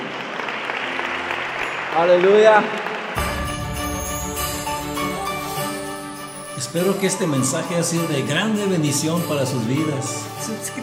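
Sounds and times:
audience applause: 0:00.0 - 0:06.4
speech: 0:02.0 - 0:03.0, 0:06.6 - 0:10.8.

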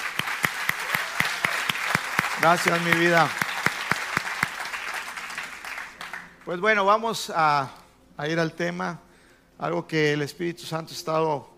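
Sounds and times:
audience applause: 0:00.0 - 0:06.4
speech: 0:02.4 - 0:03.4, 0:06.4 - 0:09.0, 0:09.6 - 0:11.5.

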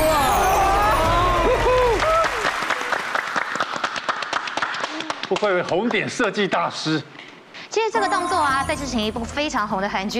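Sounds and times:
studio audience applause: 0:00.2 - 0:06.1
speech: 0:05.3 - 0:10.1.

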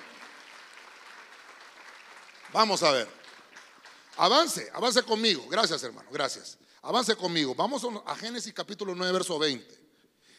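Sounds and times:
audience clapping loudly: 0:00.0 - 0:06.4
speech: 0:02.5 - 0:03.2, 0:04.2 - 0:09.8.

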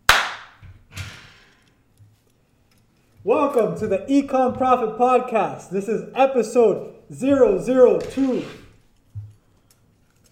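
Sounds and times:
hand clap: 0:00.0 - 0:00.6
speech: 0:03.2 - 0:08.6.

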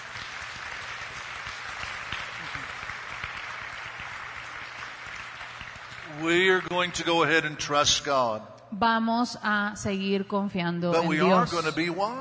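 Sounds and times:
audience applause: 0:00.0 - 0:07.6
speech: 0:06.2 - 0:12.1.

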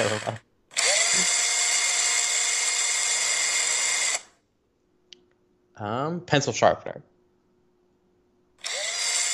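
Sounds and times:
speech: 0:00.0 - 0:00.4, 0:05.8 - 0:07.1
electric screwdriver whirring: 0:00.0 - 0:04.4, 0:08.6 - 0:09.3.

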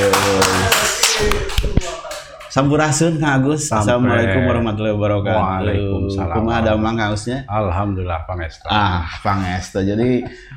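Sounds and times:
applause, hands clapping: 0:00.0 - 0:02.7
speech: 0:02.6 - 0:10.5.

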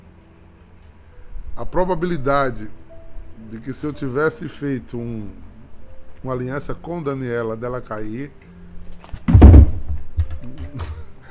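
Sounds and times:
speech: 0:01.6 - 0:02.8, 0:03.4 - 0:05.5, 0:06.2 - 0:08.5
door banged shut by the wind: 0:09.1 - 0:10.4.

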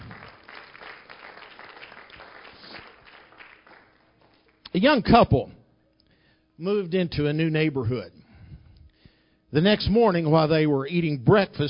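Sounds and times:
audience clapping hands: 0:00.0 - 0:04.7
speech: 0:04.7 - 0:05.6, 0:06.6 - 0:08.2, 0:09.5 - 0:11.6.

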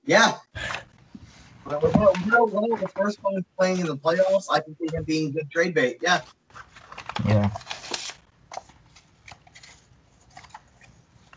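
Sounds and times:
speech: 0:00.1 - 0:00.4, 0:01.7 - 0:07.8
paper note cards being shuffled and handled: 0:00.8 - 0:03.1, 0:06.2 - 0:11.3.

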